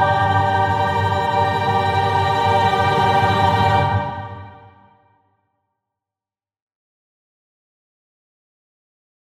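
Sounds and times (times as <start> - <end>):
baroque music: 0.0 - 4.8.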